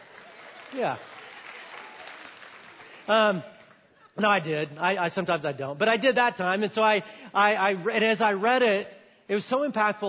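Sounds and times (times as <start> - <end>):
audience applause: 0.0 - 3.8
speech: 0.7 - 1.1, 3.1 - 3.6, 4.2 - 10.0.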